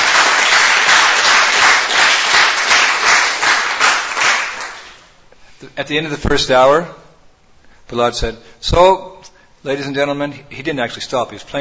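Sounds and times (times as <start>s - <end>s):
crowd applauding: 0.0s - 5.1s
speech: 5.8s - 7.0s, 7.9s - 11.5s.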